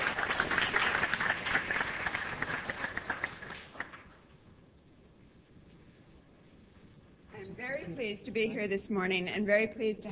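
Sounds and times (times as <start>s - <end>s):
audience applause: 0.0s - 4.1s
speech: 7.9s - 10.1s.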